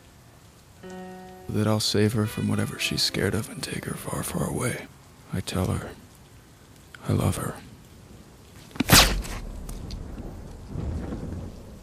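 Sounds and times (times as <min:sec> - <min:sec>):
speech: 0:00.8 - 0:06.0, 0:07.0 - 0:07.7
silenced gunshot: 0:08.8 - 0:09.4.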